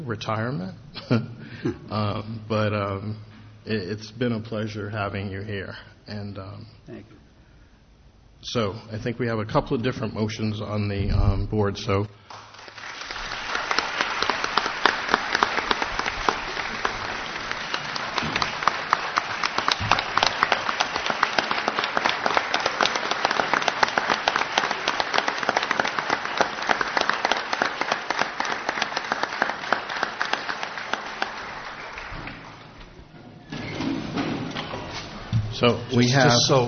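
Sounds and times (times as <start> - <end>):
speech: 0.0 - 7.2, 8.4 - 12.1, 36.2 - 36.6
meeting room applause for a retiring member: 12.2 - 35.3.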